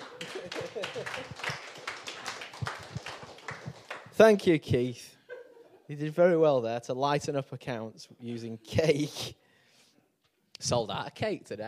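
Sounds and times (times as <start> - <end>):
laughter: 0.0 - 1.7, 5.2 - 5.9
audience applause: 0.0 - 4.2
speech: 4.2 - 5.1, 5.9 - 9.4, 10.6 - 11.6.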